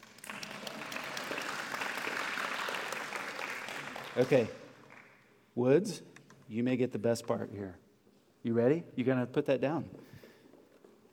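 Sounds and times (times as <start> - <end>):
round of applause: 0.0 - 5.3
speech: 4.2 - 4.6, 5.6 - 7.8, 8.4 - 10.2.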